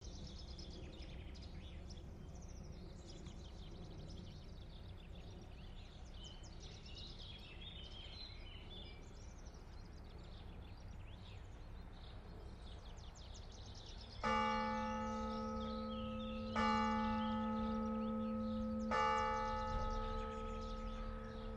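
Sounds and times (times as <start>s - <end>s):
bells ringing: 14.2s - 21.5s.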